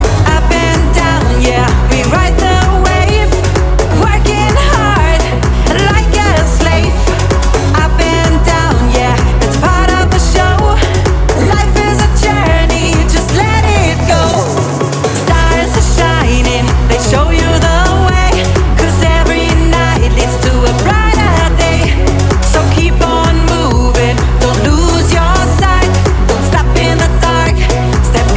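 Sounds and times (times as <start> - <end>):
punchy pop music: 0.0 - 28.3.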